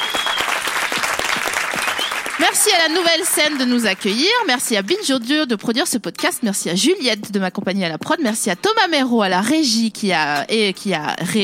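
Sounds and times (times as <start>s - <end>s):
audience applause: 0.0s - 4.4s
speech: 2.4s - 11.4s.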